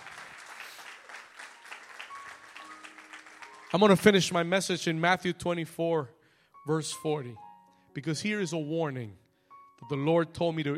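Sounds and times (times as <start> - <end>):
audience hand clapping: 0.0 - 4.5
speech: 3.7 - 7.4, 8.0 - 9.2, 9.8 - 10.7.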